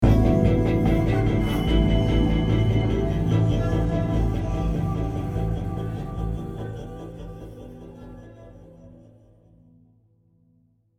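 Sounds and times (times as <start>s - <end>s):
music stinger: 0.0s - 7.8s.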